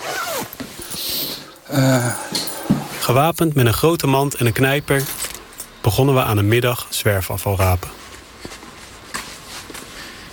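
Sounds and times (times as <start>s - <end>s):
footsteps walking between terraced houses in drizzle: 0.3s - 3.3s, 7.6s - 10.3s
speech: 1.7s - 2.4s, 3.1s - 5.2s, 5.8s - 8.0s.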